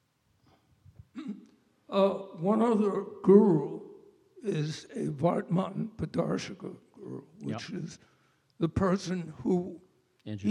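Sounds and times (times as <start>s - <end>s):
throat clearing: 1.1s - 1.6s
speech: 1.2s - 3.7s, 4.4s - 10.4s.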